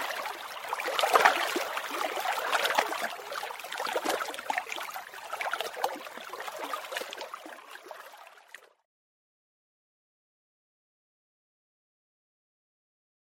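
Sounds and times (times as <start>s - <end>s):
lake waves splashing on rocks: 0.0s - 7.2s.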